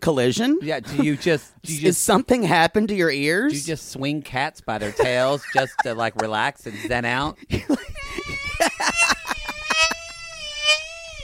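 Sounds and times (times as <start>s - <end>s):
speech: 0.0s - 7.9s
laughter: 0.8s - 1.5s, 4.8s - 10.1s
high-pitched chandelier scream: 8.1s - 11.2s.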